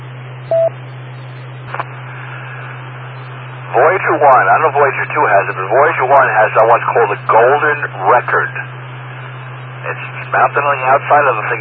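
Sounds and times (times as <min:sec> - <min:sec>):
low electrical hum: 0:00.0 - 0:11.5
telephone beep: 0:00.5 - 0:00.7
speech: 0:03.7 - 0:08.8, 0:09.8 - 0:11.5.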